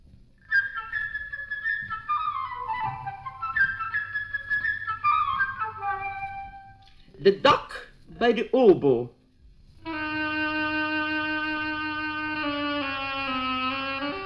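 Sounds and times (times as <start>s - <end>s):
flute playing the bird's motif: 0.4s - 7.0s, 9.8s - 14.2s
speech: 7.2s - 9.2s.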